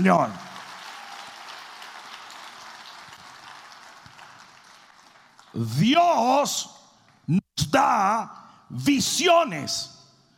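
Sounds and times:
speech: 0.0s - 0.4s, 5.5s - 10.0s
audience applause: 0.0s - 5.6s.

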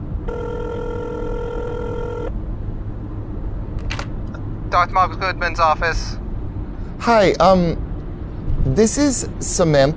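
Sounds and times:
telephone number being dialed: 0.3s - 2.3s
speech: 4.8s - 6.2s, 7.0s - 7.8s, 8.7s - 9.9s.

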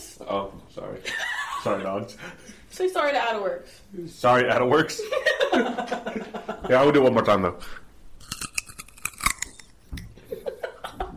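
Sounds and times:
speech: 0.2s - 7.8s
biting and chewing crisp raw carrots: 8.2s - 9.8s.

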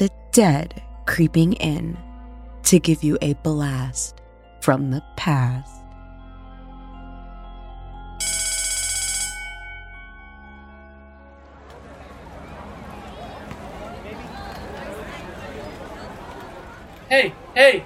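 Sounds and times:
speech: 0.0s - 5.8s, 17.1s - 17.8s
school bell ringing at end of day: 8.2s - 11.5s
crowd chatter: 11.4s - 17.8s.

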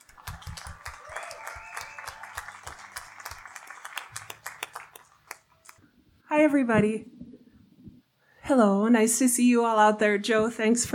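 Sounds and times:
audience applause for a writer at a reading event: 0.0s - 5.8s
speech: 6.3s - 7.1s, 8.5s - 10.9s.

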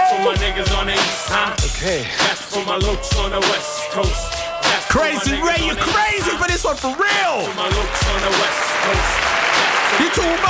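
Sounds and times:
speech: 0.2s - 10.4s
applause: 6.2s - 10.4s.

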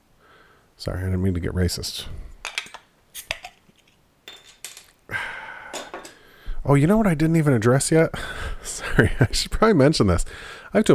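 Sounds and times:
speech: 0.8s - 2.3s, 6.7s - 10.9s
glassy clinks and taps: 2.5s - 5.0s
Great Lakes Brewing Company beer fizzing after opening: 3.0s - 5.1s.

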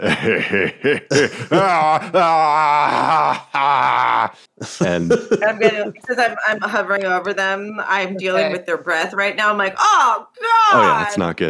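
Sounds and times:
voice mimicking laughter turning into a beastly roar: 0.0s - 6.6s
speech: 0.0s - 11.4s.

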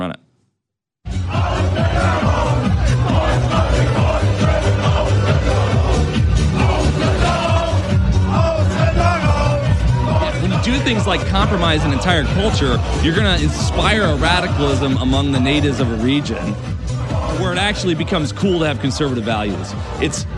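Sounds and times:
speech: 0.0s - 0.2s, 10.8s - 16.8s, 17.4s - 20.3s
crowd chanting in German: 1.1s - 20.3s.

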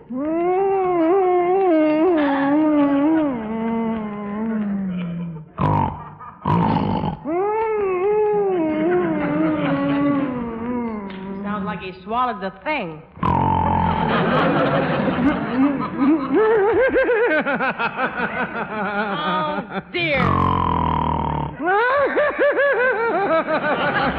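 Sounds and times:
laughter: 0.2s - 6.6s, 7.3s - 11.4s, 13.9s - 20.2s, 21.6s - 24.1s
harsh rasping sleep grunts or snorts: 4.6s - 7.3s, 13.2s - 14.1s, 20.2s - 21.6s
speech: 12.4s - 13.1s.

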